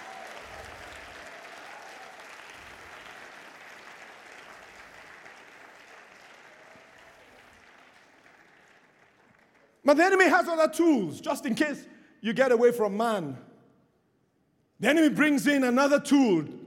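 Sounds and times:
audience applause: 0.0s - 9.8s
speech: 9.9s - 13.5s, 14.8s - 16.6s.

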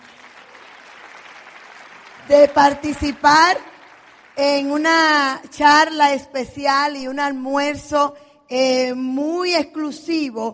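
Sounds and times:
applause from many hands: 0.0s - 5.6s
speech: 2.2s - 3.7s, 4.4s - 10.5s.

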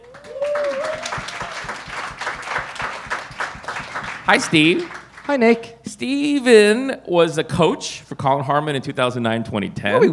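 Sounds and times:
audience round of applause: 0.0s - 5.5s
speech: 4.3s - 10.1s.

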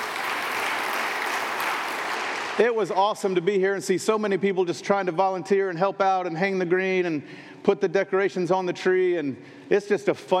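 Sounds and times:
church audience clapping: 0.0s - 3.1s
speech: 2.6s - 10.3s.

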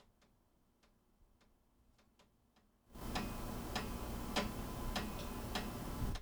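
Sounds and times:
low hum: 3.0s - 6.2s
water dripping onto air conditioner unit: 3.0s - 6.2s.

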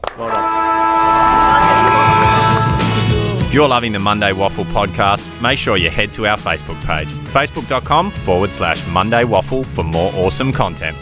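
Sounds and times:
crowd cheering and applauding: 0.0s - 3.3s
speech: 0.1s - 0.5s, 3.6s - 11.0s.

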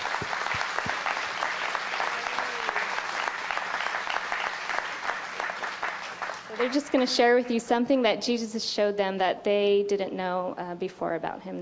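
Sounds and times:
audience applause: 0.0s - 7.5s
speech: 6.6s - 11.6s.

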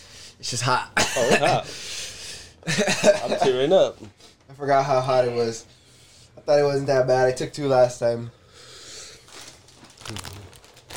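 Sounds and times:
speech: 0.4s - 1.9s, 2.6s - 5.8s, 6.4s - 8.4s, 10.1s - 10.3s
snack bag crinkling: 9.2s - 10.9s
crunchy bites of regular Cheetos: 9.3s - 10.9s.

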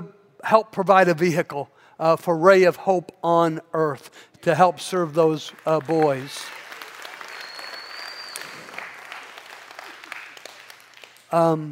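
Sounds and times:
speech: 0.4s - 6.6s, 11.3s - 11.6s
audience applause: 5.5s - 11.3s.

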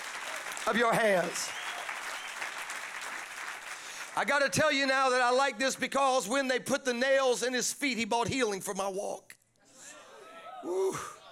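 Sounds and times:
audience clapping hands: 0.0s - 5.2s
speech: 0.6s - 1.6s, 4.2s - 9.3s, 10.6s - 11.2s.

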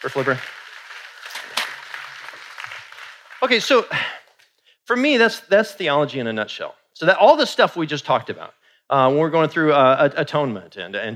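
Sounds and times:
speech: 0.0s - 0.6s, 3.4s - 4.2s, 4.9s - 11.1s
audience applause: 0.0s - 4.3s.

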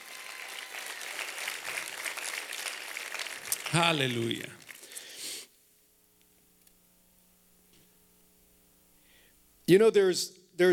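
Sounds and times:
audience applause: 0.0s - 5.0s
speech: 3.7s - 4.6s, 9.7s - 10.7s.

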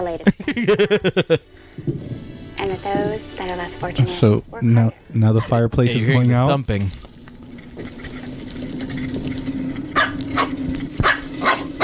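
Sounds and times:
speech: 0.0s - 7.0s
low hum: 0.0s - 11.8s
laughter: 0.2s - 1.5s, 5.3s - 6.7s
small Pomeranian dog yapping: 10.0s - 11.8s.

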